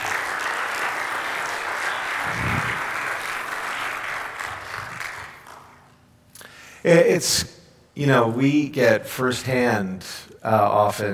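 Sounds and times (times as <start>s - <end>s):
round of applause: 0.0s - 5.9s
speech: 6.8s - 11.1s.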